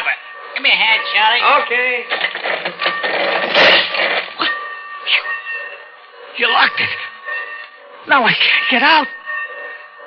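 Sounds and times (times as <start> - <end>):
speech: 0.6 - 4.2, 5.1 - 5.3, 6.4 - 7.1, 8.0 - 9.2
heavy sliding door grinding along its track: 2.1 - 4.4.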